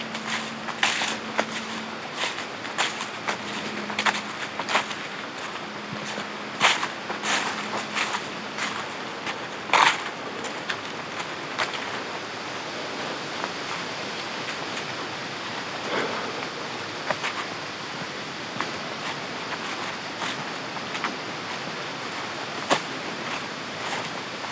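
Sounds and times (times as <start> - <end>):
crisp leaves crunching: 0.0 - 11.9
steady hiss: 0.0 - 24.5.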